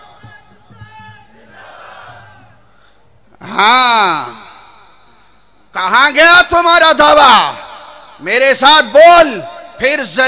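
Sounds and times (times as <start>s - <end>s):
crowd at a religious rally shouting a slogan in unison: 0.0s - 2.6s
speech: 3.6s - 4.4s, 5.8s - 7.6s, 8.2s - 10.2s.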